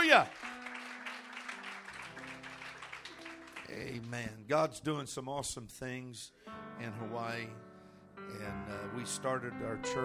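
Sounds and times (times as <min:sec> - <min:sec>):
audience clapping: 0:00.0 - 0:04.5
speech: 0:00.1 - 0:00.4, 0:03.7 - 0:07.6, 0:08.2 - 0:10.0.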